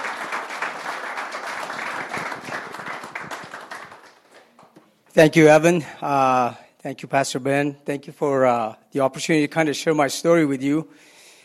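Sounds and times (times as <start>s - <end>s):
round of applause: 0.0s - 4.7s
speech: 5.2s - 11.2s.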